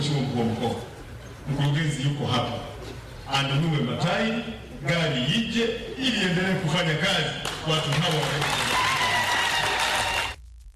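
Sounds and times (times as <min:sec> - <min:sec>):
speech: 0:00.1 - 0:08.8
crowd at a public meeting cheering and applauding: 0:07.9 - 0:10.4.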